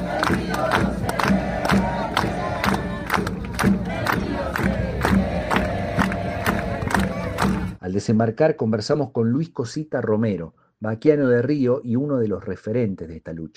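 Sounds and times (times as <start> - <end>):
crowd chanting a slogan in unison: 0.0 - 7.8
speech: 8.0 - 13.5.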